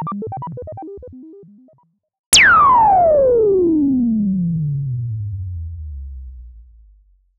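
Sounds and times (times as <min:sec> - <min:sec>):
ARP Odyssey synthesizer effects: 0:02.3 - 0:06.6.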